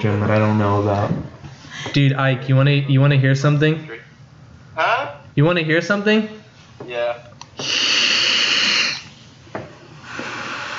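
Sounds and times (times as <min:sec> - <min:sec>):
speech: 0:00.0 - 0:04.0, 0:04.8 - 0:08.0
blowing air onto a phone microphone: 0:07.6 - 0:09.1.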